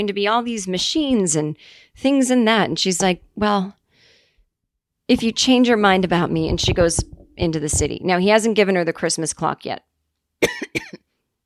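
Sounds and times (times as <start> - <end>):
speech: 0.0 - 3.8, 5.1 - 10.9
cough: 10.4 - 11.1.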